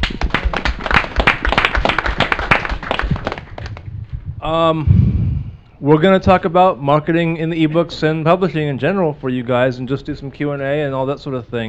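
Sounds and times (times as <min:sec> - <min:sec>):
audience applause: 0:00.0 - 0:03.9
speech: 0:04.4 - 0:05.1, 0:05.8 - 0:11.6.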